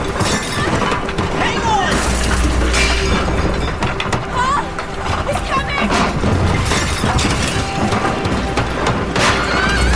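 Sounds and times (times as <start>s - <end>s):
glass breaking as a tree crashes through a window: 0.0s - 4.2s, 5.9s - 9.9s
wood splintering: 0.0s - 9.9s.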